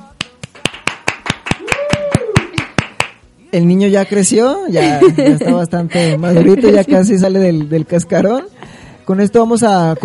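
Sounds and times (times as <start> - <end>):
rhythmic clapping: 0.0 - 3.3, 7.5 - 8.7
speech: 3.5 - 10.0
laughter: 4.1 - 8.4.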